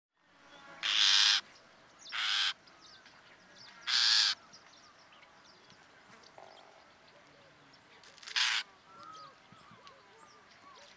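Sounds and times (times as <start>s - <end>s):
common nightingale Luscinia megarhynchos singing: 0.5s - 10.9s.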